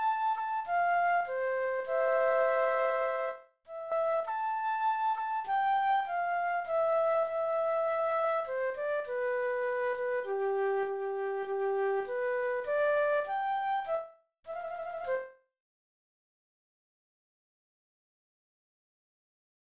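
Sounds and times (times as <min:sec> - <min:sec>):
flute playing: 0:00.0 - 0:15.4.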